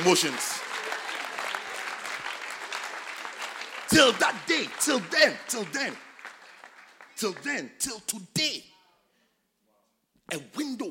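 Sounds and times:
speech: 0.0s - 0.7s, 3.9s - 6.0s, 7.2s - 8.7s, 10.3s - 10.9s
audience clapping: 0.0s - 7.9s.

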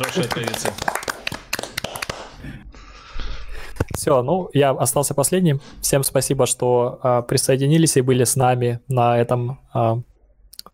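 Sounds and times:
speech: 0.0s - 1.0s, 4.0s - 10.1s
hand clapping: 0.0s - 2.4s.

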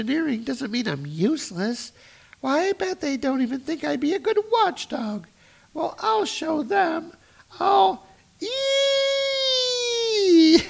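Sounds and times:
speech: 0.0s - 9.1s
person imitating a scream: 8.4s - 10.6s.

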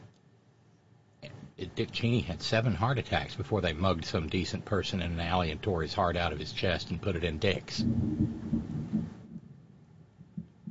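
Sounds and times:
speech: 1.7s - 8.4s
thunderclap from a storm: 7.0s - 9.5s.

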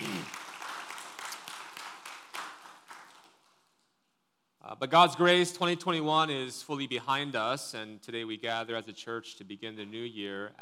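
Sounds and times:
church congregation applauding to welcome a first-time visitor: 0.0s - 3.9s
scattered sharper claps: 0.0s - 3.9s
speech: 4.7s - 10.6s.

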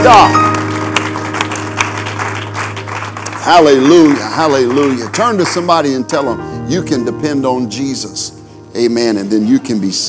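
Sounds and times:
speech: 0.0s - 0.4s, 3.5s - 10.0s
audience clapping hands in praise: 0.0s - 6.3s.

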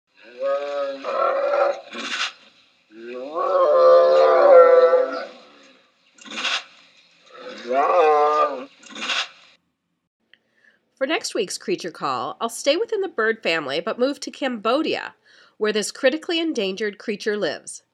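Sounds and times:
tiger moaning in greeting: 0.2s - 5.9s, 7.3s - 8.7s
speech: 11.4s - 17.9s.

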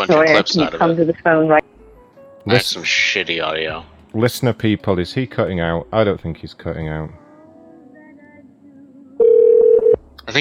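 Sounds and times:
speech: 0.0s - 1.7s, 2.4s - 7.2s, 10.3s - 10.4s
faint low hum: 3.8s - 10.4s.

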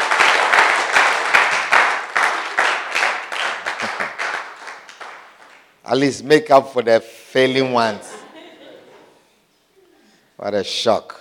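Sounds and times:
audience clapping hands: 0.0s - 5.8s
speech: 5.9s - 8.1s, 10.4s - 11.1s
laughter: 7.8s - 9.3s.

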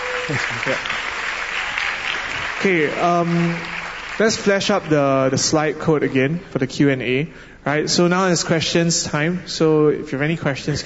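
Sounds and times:
audience round of applause: 0.0s - 5.0s
speech: 0.3s - 1.1s, 2.6s - 10.8s.

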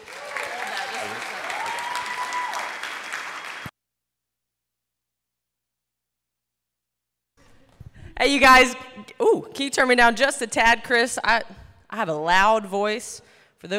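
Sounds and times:
audience applause: 0.0s - 3.7s
speech: 8.2s - 13.7s.

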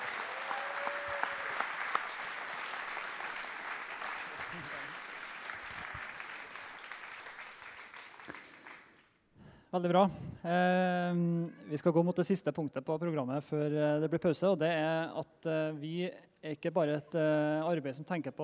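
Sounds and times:
audience applause: 0.0s - 9.0s
speech: 9.7s - 18.4s.

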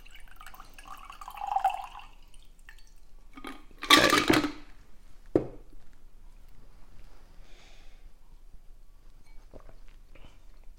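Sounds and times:
cocktail strained from a shaker into a glass: 0.0s - 4.1s.

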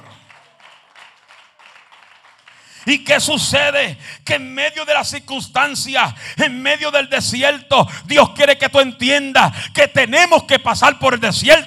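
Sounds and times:
crowd clapping in rhythm: 0.0s - 3.3s
speech: 2.8s - 11.6s.

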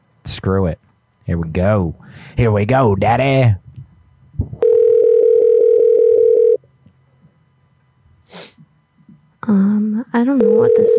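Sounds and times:
speech: 0.3s - 3.6s, 9.5s - 10.9s
telephone dial tone: 4.6s - 6.6s, 10.4s - 10.9s
sneeze-like burst: 8.3s - 8.6s.

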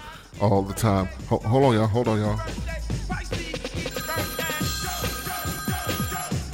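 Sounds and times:
speech: 0.4s - 2.7s
telephone hotline chiming: 3.8s - 6.4s.

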